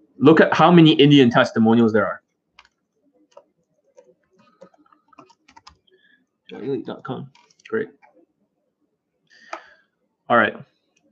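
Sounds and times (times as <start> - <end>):
speech: 0.2 - 2.2, 6.5 - 8.0, 10.3 - 10.7
typing a web address on a computer keyboard: 2.6 - 5.9, 7.3 - 8.2.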